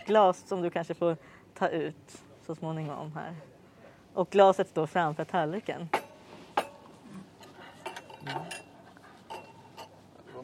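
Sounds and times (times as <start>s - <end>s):
speech: 0.1s - 3.5s, 4.2s - 6.0s, 8.2s - 8.6s
starter and main-course cutlery clinking: 6.0s - 10.4s.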